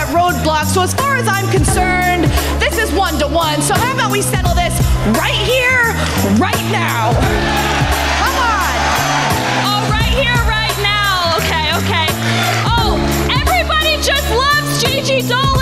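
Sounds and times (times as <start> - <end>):
pounding low rhythm: 0.0 - 15.5
speech: 0.1 - 7.7
wrestling crowd cheering: 5.4 - 15.5.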